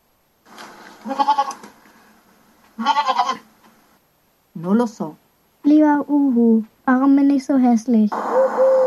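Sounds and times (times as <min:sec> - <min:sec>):
goat bleating: 0:01.0 - 0:01.6, 0:02.8 - 0:03.5
speech: 0:01.0 - 0:01.6, 0:04.6 - 0:05.2, 0:05.8 - 0:08.7.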